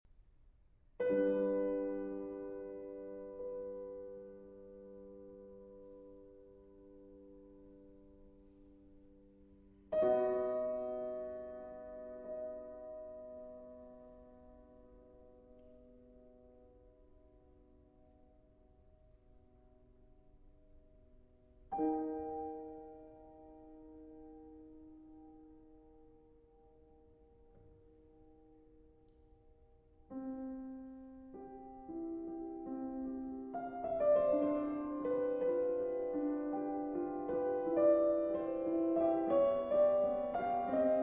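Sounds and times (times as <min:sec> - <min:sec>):
solo piano: 0:00.1 - 0:41.0.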